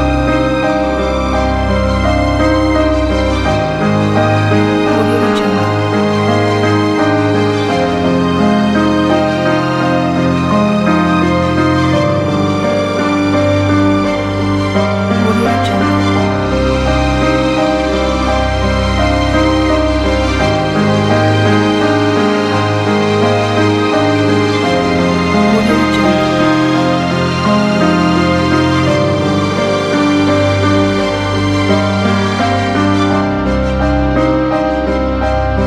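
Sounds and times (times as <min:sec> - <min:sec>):
sad piano music: 0:00.0 - 0:35.6.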